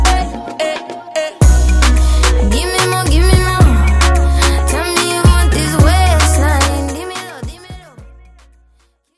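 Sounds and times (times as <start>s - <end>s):
extended drum hype intro: 1.4s - 6.8s.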